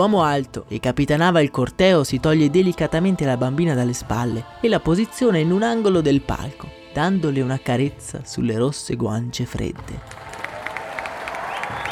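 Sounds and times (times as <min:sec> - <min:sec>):
speech: 0:00.0 - 0:10.2
crowd ovation with applause: 0:10.0 - 0:11.9.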